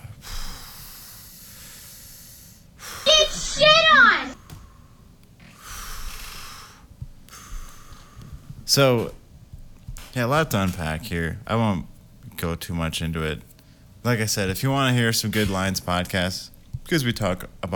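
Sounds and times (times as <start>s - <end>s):
deep breaths: 0.0s - 8.7s, 13.6s - 14.0s
speech: 8.7s - 9.2s, 10.2s - 17.7s.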